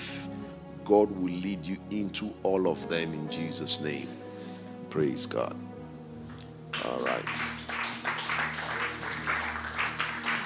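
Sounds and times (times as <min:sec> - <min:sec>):
speech: 0:00.9 - 0:04.2, 0:04.9 - 0:05.7, 0:06.8 - 0:07.6
audience clapping: 0:06.3 - 0:10.4.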